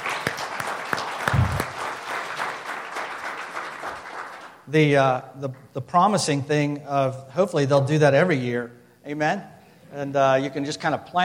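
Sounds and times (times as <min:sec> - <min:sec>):
crowd applauding: 0:00.0 - 0:04.6
speech: 0:04.7 - 0:11.2.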